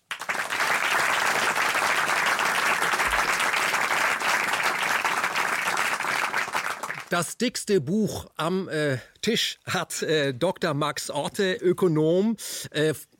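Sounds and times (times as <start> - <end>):
audience applause: 0.0 - 7.1
speech: 7.1 - 13.1.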